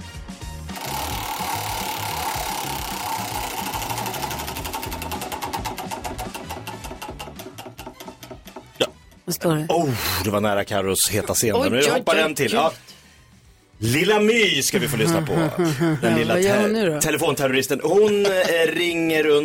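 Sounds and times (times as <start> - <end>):
prize wheel spinning: 0.7 - 8.9
speech: 9.3 - 12.9, 13.8 - 19.4
laughter: 14.8 - 17.2, 17.9 - 18.8.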